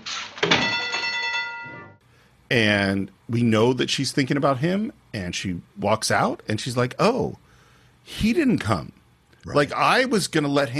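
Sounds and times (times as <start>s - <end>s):
bell ringing in a film scene: 0.6s - 2.0s
speech: 2.5s - 7.4s, 8.0s - 10.7s.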